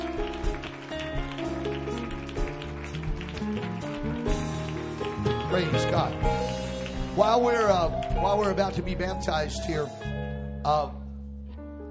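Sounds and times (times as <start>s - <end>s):
audience clapping hands: 0.0s - 9.4s
speech: 5.5s - 6.6s, 7.2s - 11.0s.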